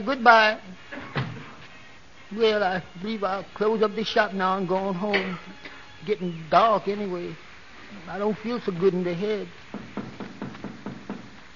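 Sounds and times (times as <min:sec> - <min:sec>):
speech: 0:00.0 - 0:00.8, 0:02.3 - 0:09.6
firm knocking on a back door: 0:09.7 - 0:11.4.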